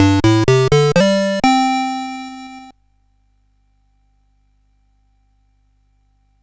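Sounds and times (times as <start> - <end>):
CSG 8580 sound chip: 0.0 - 2.7.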